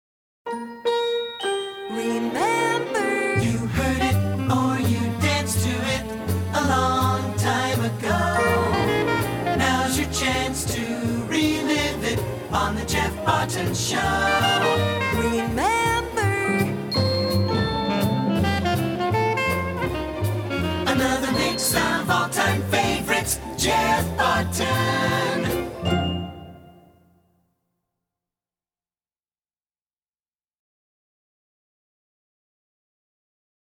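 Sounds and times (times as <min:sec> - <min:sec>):
song: 0:00.5 - 0:27.2.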